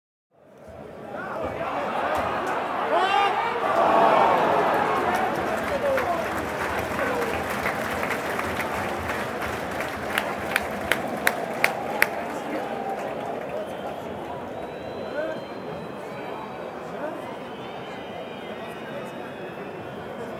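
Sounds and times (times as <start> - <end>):
stadium fans: 0.4 - 20.3
stadium fans clapping: 1.2 - 20.3.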